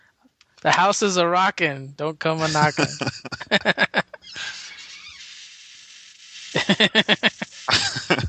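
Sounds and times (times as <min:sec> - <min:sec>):
speech: 0:00.6 - 0:04.0, 0:06.7 - 0:07.4
laughter: 0:02.4 - 0:05.0, 0:06.6 - 0:08.2
chair squeaking and creaking: 0:04.1 - 0:07.5.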